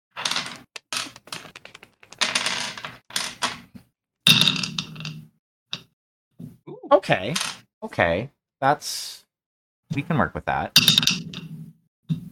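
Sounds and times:
dice being rolled: 0.2 - 3.6, 10.8 - 11.5
speech: 7.0 - 9.2, 9.9 - 11.4.

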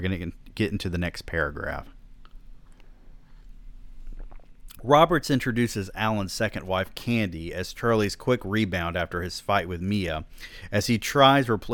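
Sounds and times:
speech: 0.0 - 2.0, 4.8 - 11.7
low steady hum: 0.0 - 11.7
person sipping water: 2.2 - 4.8.

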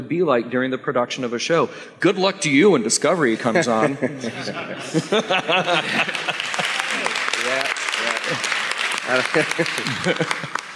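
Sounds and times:
speech: 0.0 - 6.3, 9.1 - 10.6
laughter: 3.3 - 10.7
audience clapping: 5.3 - 10.7.

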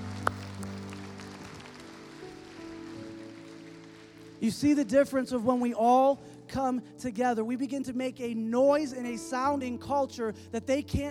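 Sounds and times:
audience clapping hands together: 0.0 - 5.0
speech: 4.4 - 11.1.

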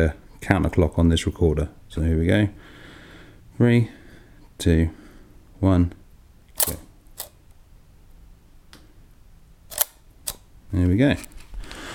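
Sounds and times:
speech: 0.0 - 2.8, 3.6 - 4.0, 4.6 - 5.0, 5.6 - 6.0, 6.6 - 6.8, 10.7 - 11.3
large format 4x5 camera shutter clicks during exposure: 6.6 - 7.4, 9.7 - 10.4.

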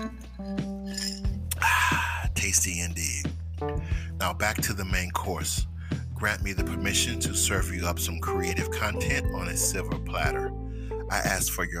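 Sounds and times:
glass clinking: 0.0 - 1.6
speech: 2.5 - 11.7.

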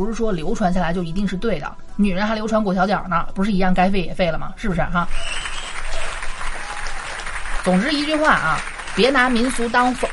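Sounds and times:
speech: 0.0 - 5.6, 7.6 - 10.1
crowd applause: 5.1 - 10.1.

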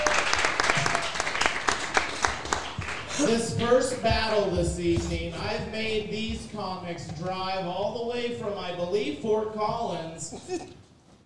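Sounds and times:
audience round of applause: 0.0 - 4.2
speech: 3.2 - 10.8.

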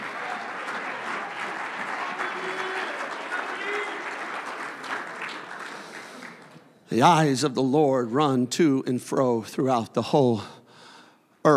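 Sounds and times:
audience applause: 0.0 - 6.6
crowd voices and cheering: 0.0 - 6.6
speech: 6.9 - 10.6.

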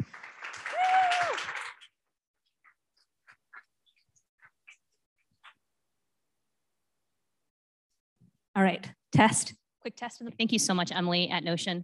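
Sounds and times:
audience clapping: 0.0 - 2.1
whistle or cheer: 0.6 - 1.5
speech: 8.6 - 11.8.

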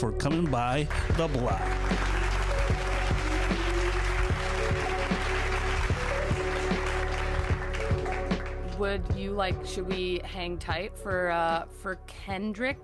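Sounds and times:
speech: 0.0 - 2.1, 8.8 - 12.8
round of applause: 0.4 - 9.0.

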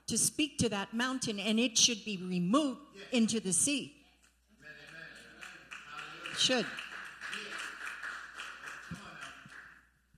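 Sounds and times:
speech: 0.1 - 4.0, 6.4 - 6.8
audience clapping: 4.8 - 9.9.

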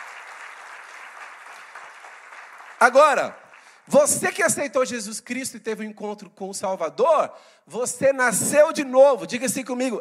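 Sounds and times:
congregation clapping for Jesus during a church service: 0.0 - 4.7
speech: 2.8 - 9.9.

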